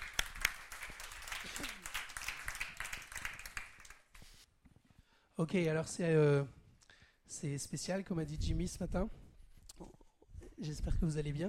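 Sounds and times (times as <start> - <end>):
crowd applauding: 0.0 - 4.1
speech: 5.4 - 6.6, 7.3 - 9.2, 10.6 - 11.4.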